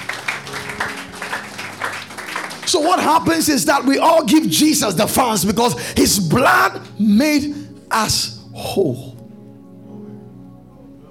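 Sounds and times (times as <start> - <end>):
crowd clapping: 0.0 - 4.0
speech: 2.7 - 9.1.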